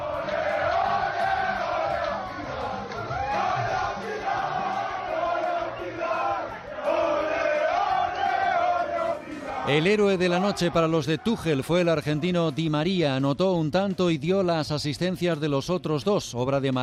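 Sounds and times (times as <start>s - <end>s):
celebration shouts in Spanish in the Paris locker room: 0.5s - 12.0s
speech: 9.7s - 16.8s.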